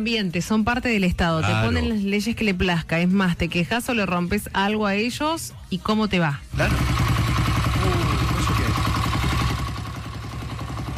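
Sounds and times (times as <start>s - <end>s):
speech: 0.0s - 7.0s
125cc motorcycle with an open exhaust idling: 6.5s - 10.9s.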